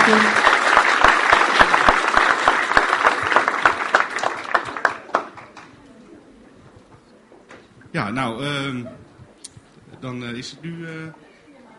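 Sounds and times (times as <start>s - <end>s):
audience applause: 0.0s - 5.7s
speech: 0.1s - 0.4s, 8.1s - 9.0s, 10.0s - 11.2s.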